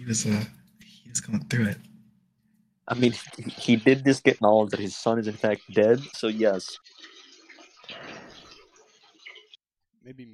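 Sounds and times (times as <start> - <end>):
speech: 0.1 - 1.9, 2.9 - 7.1, 10.0 - 10.3
running water rinsing a plate while washing dishes: 2.9 - 9.6.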